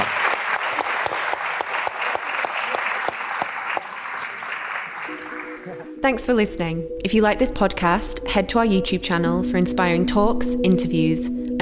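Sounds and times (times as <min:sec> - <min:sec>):
audience round of applause: 0:00.0 - 0:06.0
speech: 0:06.0 - 0:11.6.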